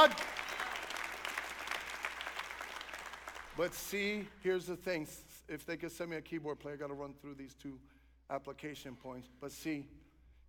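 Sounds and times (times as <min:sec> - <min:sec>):
speech: 0:00.0 - 0:00.3, 0:03.6 - 0:10.0
church congregation clapping: 0:00.0 - 0:04.4.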